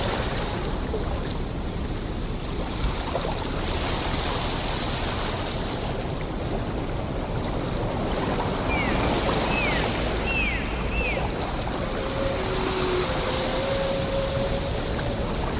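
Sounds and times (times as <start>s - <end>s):
ocean: 0.0s - 15.5s
whales: 8.5s - 15.5s.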